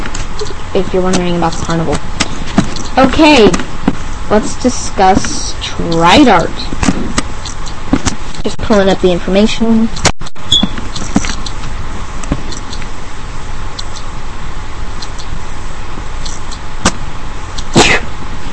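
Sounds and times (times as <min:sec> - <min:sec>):
speech: 0:00.8 - 0:02.3, 0:03.0 - 0:07.2, 0:08.4 - 0:10.7
sneeze: 0:17.8 - 0:18.1.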